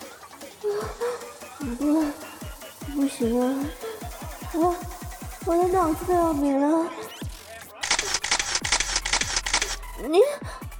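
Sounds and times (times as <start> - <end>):
speech: 1.6 - 2.2, 3.0 - 3.8, 4.5 - 7.0, 10.0 - 10.5
camera shutter clicking: 7.8 - 9.8.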